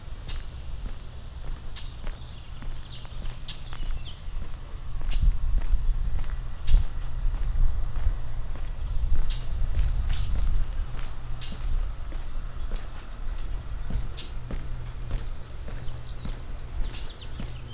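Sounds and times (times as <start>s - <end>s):
binaural outdoor ambience in Vernon: 0.0s - 17.7s.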